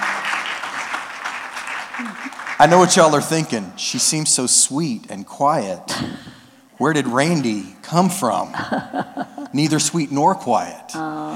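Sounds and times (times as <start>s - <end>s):
audience applause welcoming a guest to the stage: 0.0s - 3.4s
speech: 2.0s - 11.3s
laughter: 8.5s - 9.9s.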